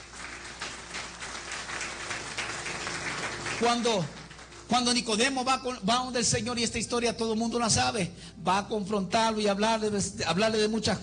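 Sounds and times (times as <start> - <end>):
audience applause: 0.0 - 5.1
speech: 3.6 - 11.0.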